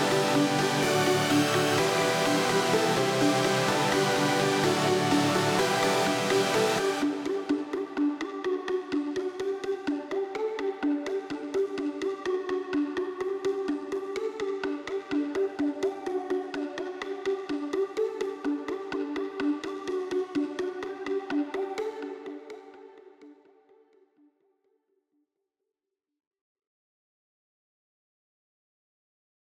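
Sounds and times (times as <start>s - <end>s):
synth stem: 0.0s - 22.6s.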